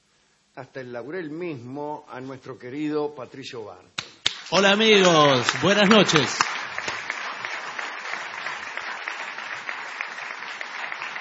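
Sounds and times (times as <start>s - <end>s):
speech: 0.6s - 6.5s
audience applause: 4.3s - 11.2s.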